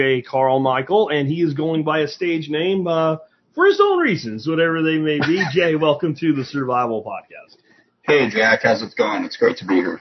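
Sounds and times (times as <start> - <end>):
speech: 0.0 - 9.9
laughter: 5.2 - 6.6, 8.1 - 9.9
echoey voice on a remote call: 7.3 - 9.9.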